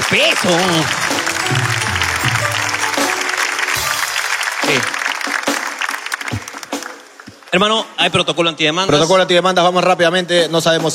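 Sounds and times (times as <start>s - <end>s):
crowd applause: 0.0s - 7.7s
speech: 0.2s - 1.1s, 4.7s - 5.0s, 7.5s - 10.9s.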